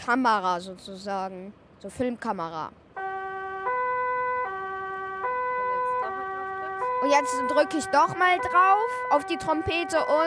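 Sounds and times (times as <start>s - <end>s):
speech: 0.0s - 2.8s, 7.0s - 10.2s
electronic toy car siren two-tone wail: 3.0s - 10.2s.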